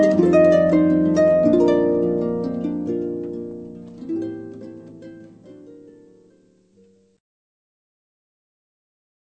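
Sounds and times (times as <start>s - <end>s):
solo harp: 0.0s - 7.2s.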